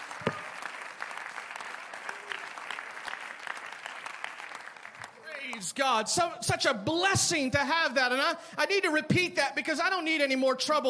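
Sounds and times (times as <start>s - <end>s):
audience clapping hands: 0.0s - 6.0s
speech: 5.6s - 10.8s.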